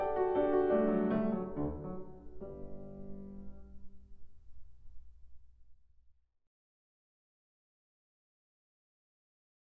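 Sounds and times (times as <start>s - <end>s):
piano dance piece: 0.0s - 5.4s.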